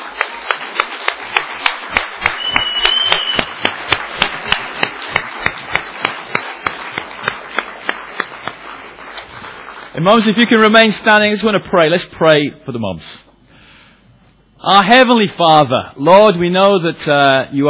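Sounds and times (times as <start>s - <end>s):
audience clapping: 0.0s - 11.4s
speech: 10.0s - 13.2s, 14.6s - 17.6s.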